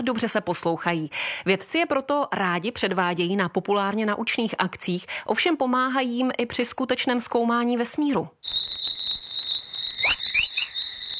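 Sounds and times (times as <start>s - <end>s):
speech: 0.0s - 9.0s
chorus plasma waves recorded by space probes, rising chirps: 8.4s - 11.1s
steady high-pitched whine: 8.5s - 11.1s.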